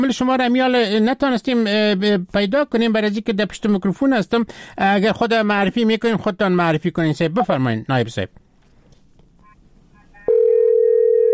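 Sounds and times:
speech: 0.0 - 8.4
telephone line tone from a faulty phone call: 9.4 - 11.3.

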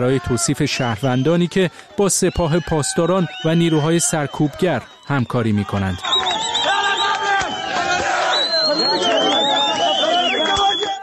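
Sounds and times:
speech: 0.0 - 6.6
protest crowd chanting slogan in Marivan: 6.0 - 11.0.

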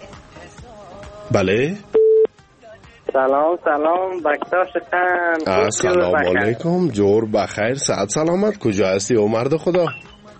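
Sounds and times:
speech: 1.3 - 1.9, 3.1 - 10.1
telephone line beep as a call to a radio show connects: 2.0 - 2.3.

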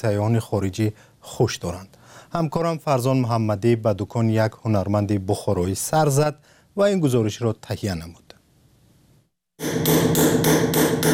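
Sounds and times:
speech: 0.0 - 8.3
engraver's hammer tapping metal: 9.6 - 11.1.

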